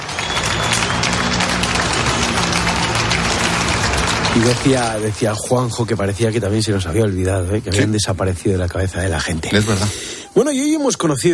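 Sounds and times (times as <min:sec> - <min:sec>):
applause: 0:00.0 - 0:07.1
speech: 0:04.4 - 0:11.3.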